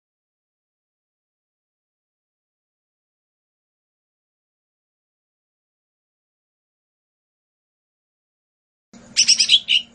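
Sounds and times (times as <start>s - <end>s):
Lesser green leafbird singing whistles, chirps and buzzy chatter: 9.2s - 9.9s.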